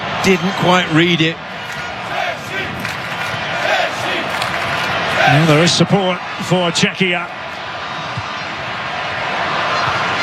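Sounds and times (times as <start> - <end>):
football crowd roar from Mexican fans at a Mexico versus Czechia match: 0.0 - 10.2
speech: 0.2 - 1.4, 5.2 - 7.4.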